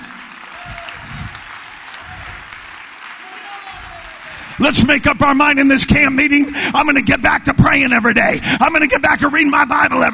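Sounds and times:
audience clapping hands: 0:00.0 - 0:06.4
speech: 0:04.6 - 0:10.1.

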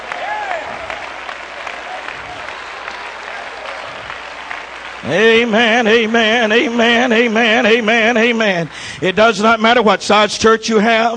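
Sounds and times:
people shouting and whooping: 0:00.0 - 0:04.3
large crowd clapping: 0:00.0 - 0:10.1
speech: 0:05.0 - 0:11.1.

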